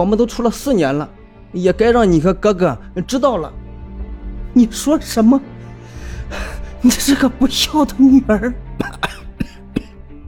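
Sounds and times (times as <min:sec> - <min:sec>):
speech: 0:00.0 - 0:03.6, 0:04.6 - 0:09.1
mother coughing: 0:08.8 - 0:10.0.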